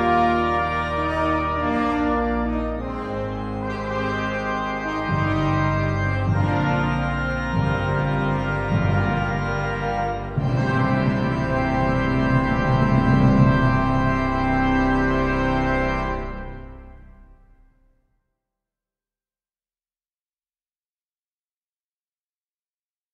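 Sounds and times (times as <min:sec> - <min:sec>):
processional fanfare: 0:00.0 - 0:17.4.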